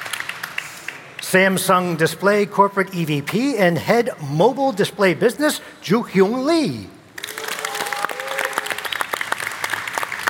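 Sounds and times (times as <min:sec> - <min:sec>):
speech: 0:01.2 - 0:07.0
audience cheering: 0:07.2 - 0:09.6.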